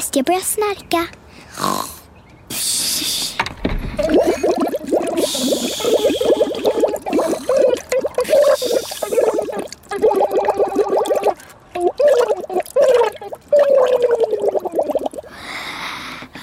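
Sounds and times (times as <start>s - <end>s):
speech: 0.2s - 1.2s
voice imitating goldfish bubbles blown through water as a song: 4.0s - 15.3s.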